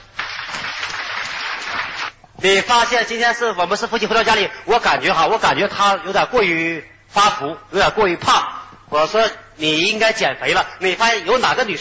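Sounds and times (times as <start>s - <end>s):
audience applause: 0.0s - 2.2s
speech: 2.4s - 11.8s.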